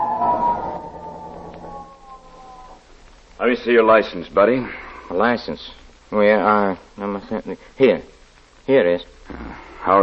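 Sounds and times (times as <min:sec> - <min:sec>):
police car siren wailing: 0:00.0 - 0:02.9
speech: 0:03.4 - 0:10.0.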